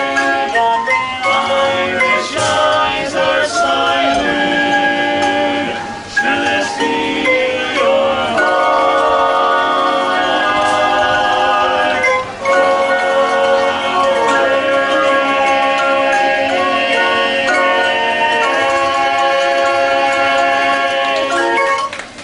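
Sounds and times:
organ chimes playing a melody: 0.0s - 22.0s.

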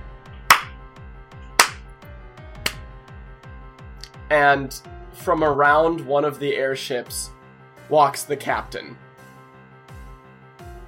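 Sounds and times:
single clap: 0.5s - 0.8s, 1.6s - 1.8s
speech: 4.3s - 9.0s.

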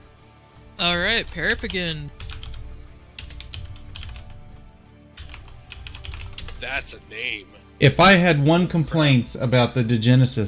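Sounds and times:
speech: 0.8s - 2.2s, 6.6s - 10.4s
fingers typing on a computer keyboard: 0.8s - 4.4s, 5.2s - 6.6s.

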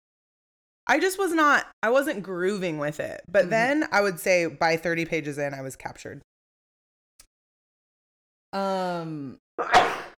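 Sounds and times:
speech: 0.9s - 6.3s, 8.5s - 10.0s
person sneezing: 9.6s - 10.1s.

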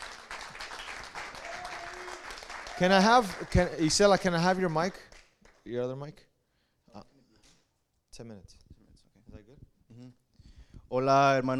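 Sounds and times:
audience applause: 0.0s - 5.0s
speech: 2.8s - 6.3s, 6.9s - 7.1s, 8.2s - 8.6s, 9.4s - 10.2s, 10.9s - 11.5s.

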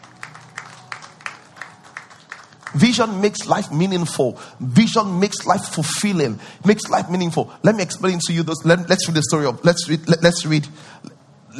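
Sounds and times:
audience clapping: 0.0s - 4.1s
speech: 2.7s - 11.5s.

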